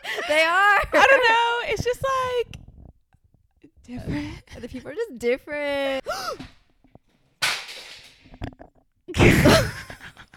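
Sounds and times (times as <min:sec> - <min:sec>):
speech: 0:00.3 - 0:02.5, 0:03.9 - 0:06.5
camera falling off tripod onto floor: 0:07.4 - 0:08.5.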